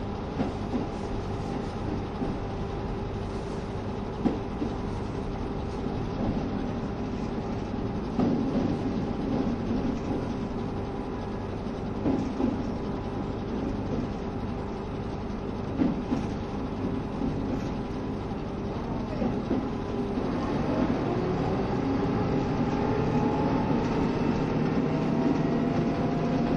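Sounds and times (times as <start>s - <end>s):
KiHa 72 series Yufuin no Mori train running: 0.0s - 26.5s
train clacks: 0.3s - 2.6s, 4.2s - 5.2s, 6.1s - 11.3s, 11.9s - 12.8s, 15.6s - 17.8s, 18.7s - 21.8s, 22.4s - 26.5s.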